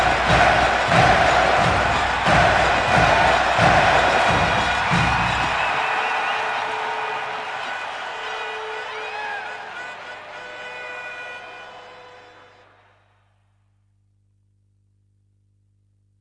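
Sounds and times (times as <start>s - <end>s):
Middle Eastern chanting: 0.0s - 12.7s.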